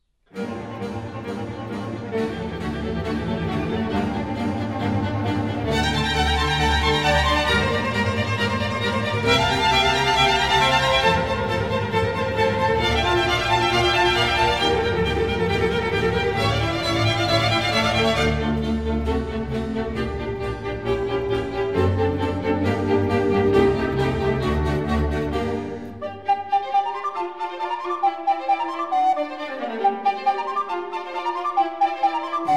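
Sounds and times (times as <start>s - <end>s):
flute concerto allegro in G minor: 0.3s - 32.5s.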